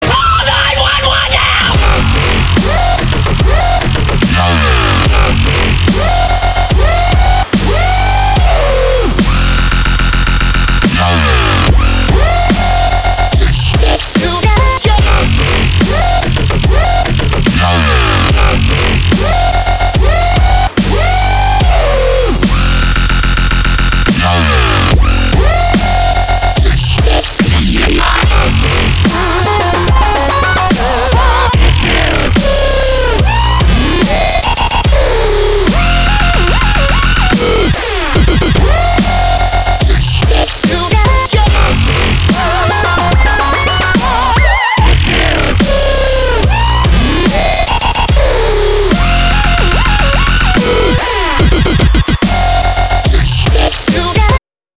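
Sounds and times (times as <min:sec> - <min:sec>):
dubstep music: 0:00.0 - 0:54.4.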